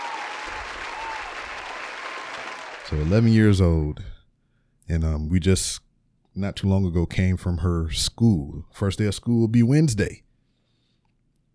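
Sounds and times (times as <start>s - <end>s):
crowd applause sound effect: 0.0s - 3.2s
speech: 2.9s - 4.2s, 4.9s - 5.8s, 6.4s - 10.2s.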